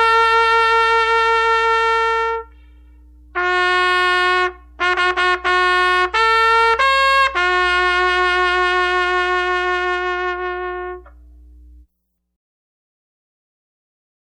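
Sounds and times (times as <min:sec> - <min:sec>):
trumpet playing for a minute of silence: 0:00.0 - 0:11.2.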